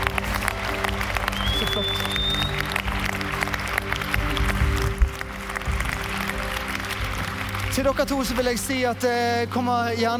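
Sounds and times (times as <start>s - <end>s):
audience clapping: 0.0s - 9.4s
speech: 7.8s - 10.1s.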